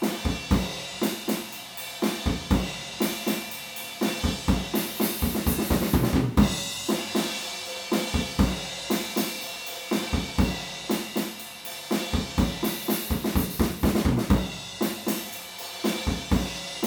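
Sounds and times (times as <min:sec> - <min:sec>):
drums recorded with a PZM omni microphone: 0:00.0 - 0:16.8.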